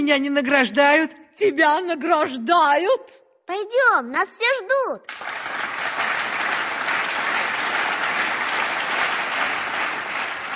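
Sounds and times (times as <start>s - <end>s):
speech: 0.0s - 5.4s
applause: 5.1s - 10.5s.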